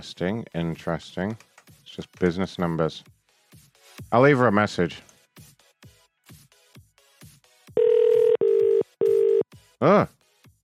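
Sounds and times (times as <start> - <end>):
speech: 0.0 - 3.1, 4.0 - 5.1, 9.8 - 10.2
British telephone ringing tone: 7.8 - 9.4.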